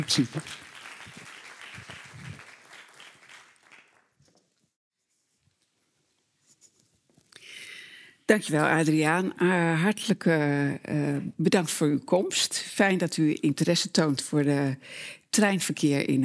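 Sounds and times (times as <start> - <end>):
speech: 0.0 - 0.7, 8.3 - 16.2
audience applause: 0.0 - 4.2.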